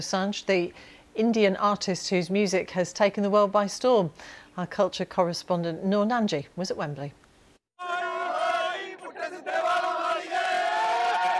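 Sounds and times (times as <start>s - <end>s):
speech: 0.0s - 7.2s
stadium crowd of concert fans cheering and shouting: 7.8s - 11.3s.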